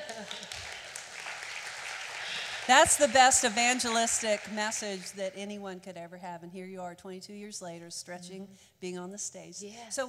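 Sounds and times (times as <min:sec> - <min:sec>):
group clapping: 0:00.0 - 0:05.4
speech: 0:02.7 - 0:10.0.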